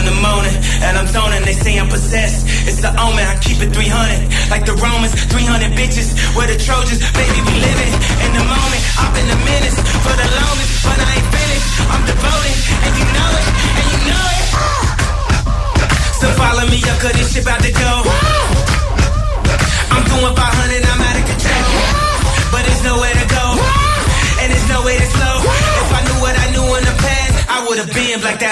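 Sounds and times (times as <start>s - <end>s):
loud hip-hop track with heavy booming bass: 0.0s - 28.5s
speech: 2.8s - 14.7s, 16.4s - 18.7s, 20.0s - 23.8s, 24.4s - 28.5s
shouted chant-like vocals: 7.2s - 27.5s.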